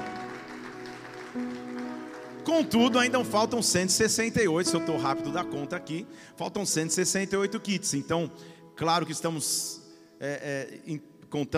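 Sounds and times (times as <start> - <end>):
audience applauding: 0.0 - 3.6
speech: 1.3 - 1.6, 2.5 - 11.5.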